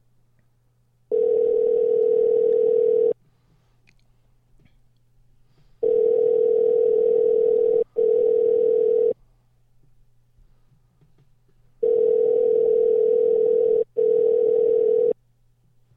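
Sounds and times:
outgoing phone call ringing, unanswered: 1.1s - 3.2s, 5.8s - 9.2s, 11.8s - 15.2s.

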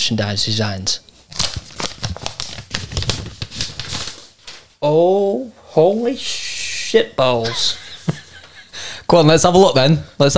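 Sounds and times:
speech: 0.0s - 1.5s, 4.8s - 7.8s, 9.1s - 10.3s
paper envelope being opened: 1.2s - 4.7s
laughter: 7.4s - 9.0s.

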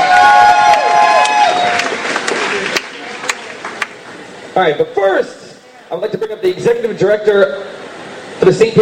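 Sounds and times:
audience applause: 0.0s - 4.0s
speech: 4.6s - 7.7s, 8.4s - 8.8s.

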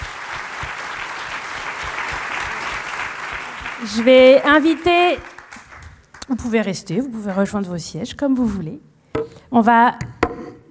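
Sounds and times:
audience applause: 0.0s - 6.4s
speech: 3.8s - 5.3s, 6.3s - 10.6s.

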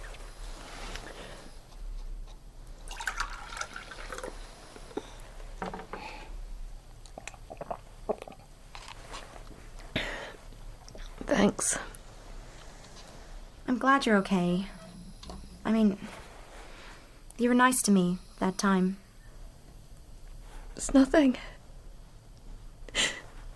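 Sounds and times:
water poured into a glass: 2.9s - 4.4s
speech: 11.5s - 11.9s, 13.8s - 14.8s, 15.7s - 16.2s, 17.4s - 19.0s, 20.8s - 21.5s.

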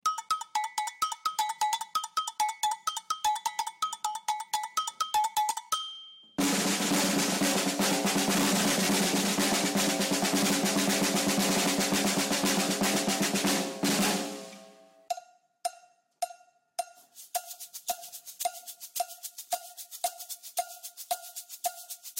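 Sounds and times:
percussion: 0.0s - 22.1s.

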